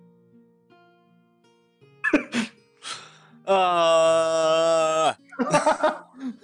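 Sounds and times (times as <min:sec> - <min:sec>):
person imitating a screaming horse: 0:03.5 - 0:05.2
laughter: 0:05.3 - 0:06.4.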